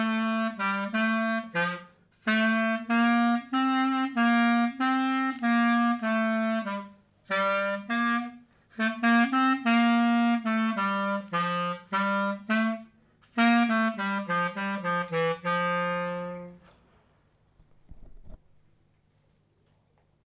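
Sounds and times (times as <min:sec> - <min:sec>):
slow Greek-style clarinet melody: 0:00.0 - 0:16.7.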